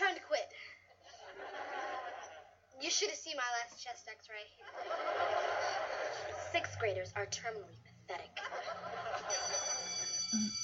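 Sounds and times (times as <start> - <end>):
laughter: 1.0 - 2.5, 4.6 - 6.5, 8.4 - 10.6
speech: 2.9 - 10.6
school bell ringing: 8.7 - 10.6.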